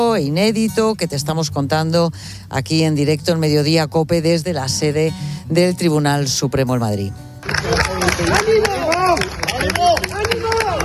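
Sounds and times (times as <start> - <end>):
speech: 0.0 - 10.5
crowd applauding: 7.4 - 10.8.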